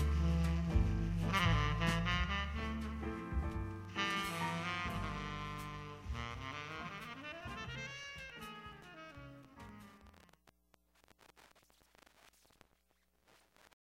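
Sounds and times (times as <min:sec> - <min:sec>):
smooth jazz: 0:00.0 - 0:10.3.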